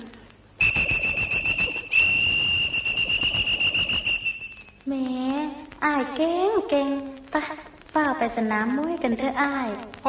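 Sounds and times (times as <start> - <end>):
whistle blown: 0.6 - 4.8
speech: 6.0 - 7.5, 8.3 - 10.0.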